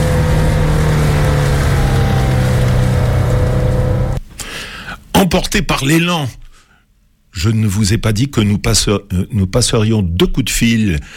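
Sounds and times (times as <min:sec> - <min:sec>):
car engine droning as it leaves town and accelerates: 0:00.0 - 0:04.2
speech: 0:05.3 - 0:06.4, 0:07.4 - 0:11.1.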